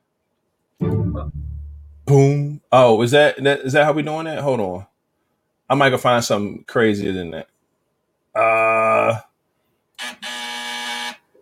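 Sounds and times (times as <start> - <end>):
speech: 0.8 - 1.5, 2.1 - 4.9, 5.7 - 7.5, 8.4 - 9.3
game-show style buzzer: 10.0 - 11.2.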